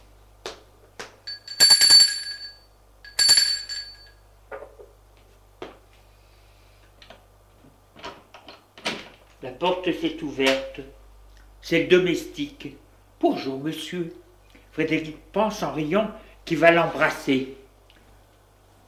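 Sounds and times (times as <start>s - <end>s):
apartment doorbell ringing: 1.3s - 4.2s
speech: 9.4s - 11.0s, 11.7s - 14.2s, 14.8s - 17.6s.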